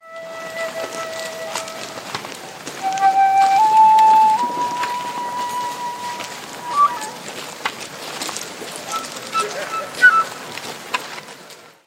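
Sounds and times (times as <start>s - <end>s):
flute playing on a forest walk in Hambach Forest: 0.0s - 7.5s, 8.8s - 10.5s.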